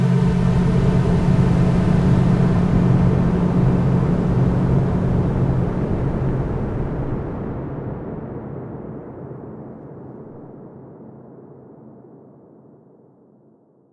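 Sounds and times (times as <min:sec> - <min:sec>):
soundscape: 0:00.1 - 0:08.4.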